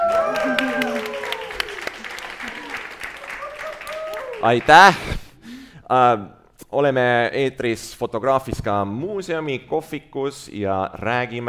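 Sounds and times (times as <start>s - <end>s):
cheerful shouts and whoops: 0.0s - 4.5s
audience clapping: 0.0s - 5.0s
speech: 4.4s - 5.2s, 5.9s - 11.4s.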